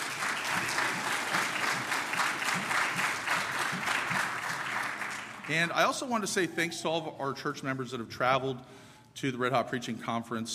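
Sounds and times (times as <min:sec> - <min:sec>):
audience applause: 0:00.0 - 0:05.8
speech: 0:05.5 - 0:10.5.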